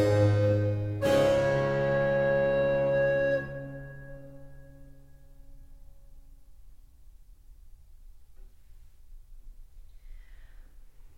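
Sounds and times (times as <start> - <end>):
recorder playing a fugue: 0.0 - 5.1.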